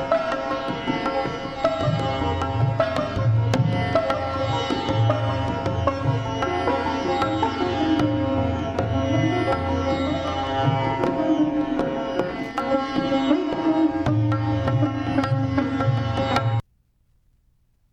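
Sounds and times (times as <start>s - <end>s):
sitar: 0.0s - 16.6s.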